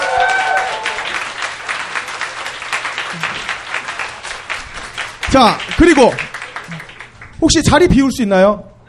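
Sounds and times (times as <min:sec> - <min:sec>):
audience clapping: 0:00.0 - 0:07.9
speech: 0:05.3 - 0:06.3, 0:07.4 - 0:08.7.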